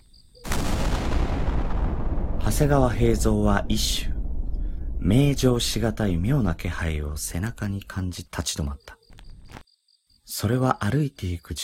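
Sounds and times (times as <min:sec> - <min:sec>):
spring thunder cracking and rumbling: 0:00.4 - 0:07.9
speech: 0:02.5 - 0:04.1, 0:05.0 - 0:09.6, 0:10.3 - 0:11.6.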